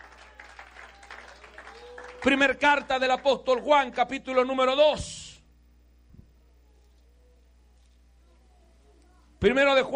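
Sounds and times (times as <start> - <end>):
audience applause: 0.0 - 3.2
speech: 2.2 - 5.2, 9.4 - 9.9.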